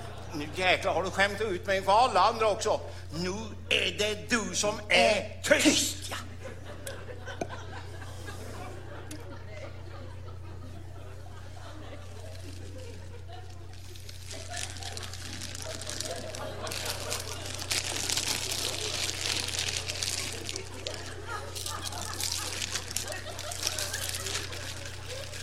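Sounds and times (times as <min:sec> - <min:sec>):
laughter: 0:00.0 - 0:25.4
speech: 0:00.4 - 0:06.3
candy bag rustling: 0:11.5 - 0:25.4.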